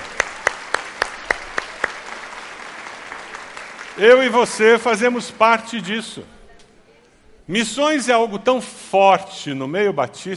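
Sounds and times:
audience applause: 0.0 - 5.0
speech: 4.0 - 6.4, 7.5 - 10.3.

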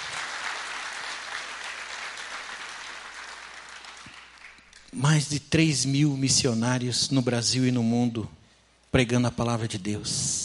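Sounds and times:
crowd applauding: 0.0 - 4.9
speech: 4.9 - 10.4.

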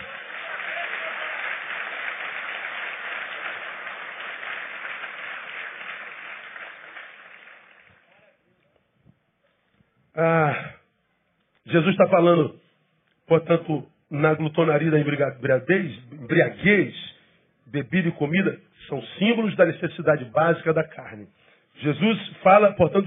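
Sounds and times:
audience clapping and cheering: 0.0 - 8.4
speech: 10.2 - 10.7, 11.7 - 12.6, 13.3 - 17.0, 17.7 - 23.0.

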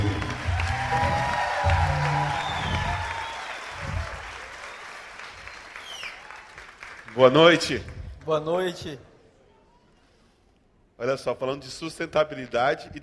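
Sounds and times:
cheering: 0.0 - 7.3
audience applause: 0.0 - 8.5
speech: 7.2 - 9.1, 11.0 - 13.0.

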